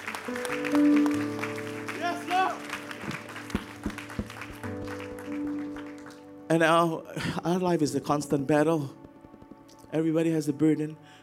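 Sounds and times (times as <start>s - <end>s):
audience applauding: 0.0s - 6.4s
sustained keyboard chords: 0.0s - 11.2s
speech: 6.5s - 9.0s, 9.9s - 11.1s.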